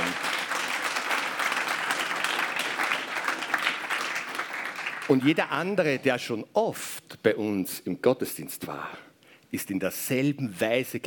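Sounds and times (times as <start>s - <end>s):
crowd clapping: 0.0s - 5.7s
speech: 5.1s - 11.0s.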